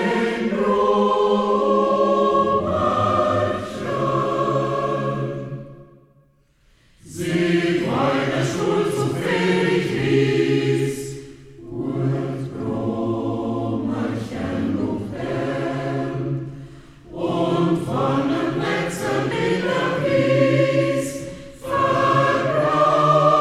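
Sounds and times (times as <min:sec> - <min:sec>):
liedertafel male choir singing in Hermannstadt: 0:00.0 - 0:06.0, 0:07.0 - 0:23.3.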